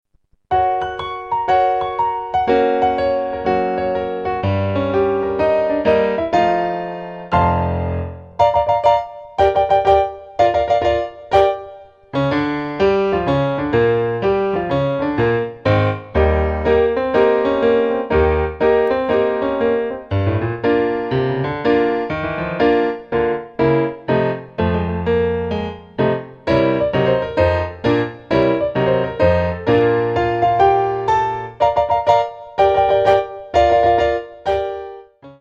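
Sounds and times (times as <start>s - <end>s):
blues music: 0.5s - 35.4s.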